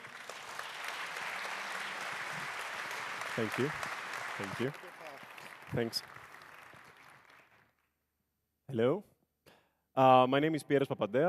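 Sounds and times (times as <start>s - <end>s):
audience applause welcoming a speaker to a conference talk on an open-source satellite: 0.0s - 7.8s
speech: 3.4s - 5.0s, 5.7s - 6.2s, 8.7s - 9.1s, 10.0s - 11.2s.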